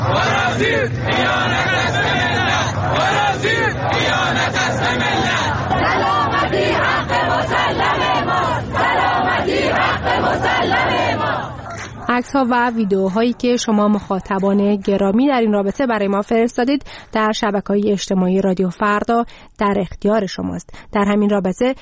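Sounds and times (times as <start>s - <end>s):
crowd of protesters chanting and shouting: 0.0s - 14.6s
speech: 0.6s - 1.5s, 12.2s - 21.7s.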